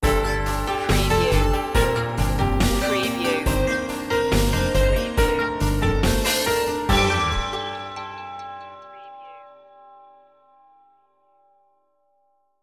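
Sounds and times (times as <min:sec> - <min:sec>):
music sting: 0:00.0 - 0:10.1.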